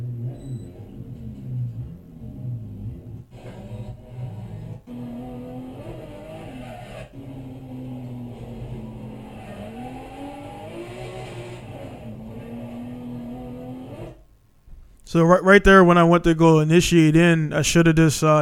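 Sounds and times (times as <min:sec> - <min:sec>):
drift car engine revving: 0:00.0 - 0:14.4
speech: 0:15.1 - 0:18.4.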